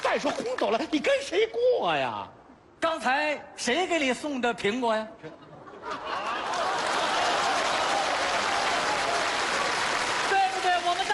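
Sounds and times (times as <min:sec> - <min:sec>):
speech: 0:00.1 - 0:06.0
laughter: 0:05.2 - 0:08.1
crowd applauding: 0:06.1 - 0:11.1
voices cheering: 0:06.2 - 0:11.1.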